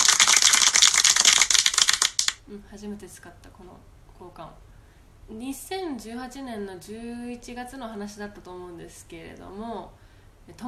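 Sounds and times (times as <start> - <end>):
hand clapping: 0.0 - 2.4
speech: 2.5 - 4.7, 5.3 - 10.6.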